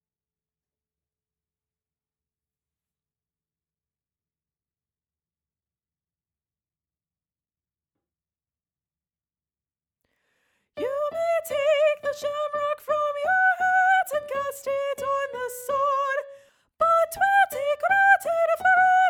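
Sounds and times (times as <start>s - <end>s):
soprano: 10.8s - 19.0s.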